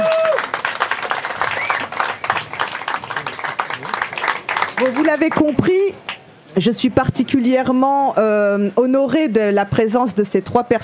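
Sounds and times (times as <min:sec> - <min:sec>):
audience applause: 0:00.0 - 0:05.6
speech: 0:04.8 - 0:10.8.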